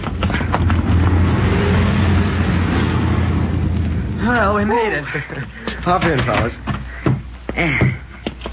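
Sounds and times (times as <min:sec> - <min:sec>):
car approaching: 0:00.0 - 0:04.4
speech: 0:04.6 - 0:06.8, 0:07.6 - 0:08.0
laughter: 0:04.8 - 0:06.4.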